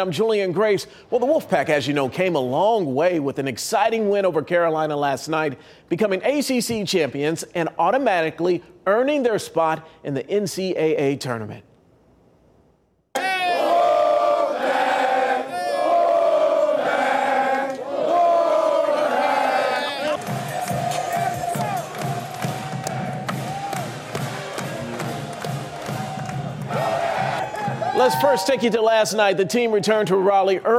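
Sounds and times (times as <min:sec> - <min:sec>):
speech: 0:00.0 - 0:11.7, 0:28.0 - 0:30.7
crowd of supporters cheering: 0:13.2 - 0:28.9.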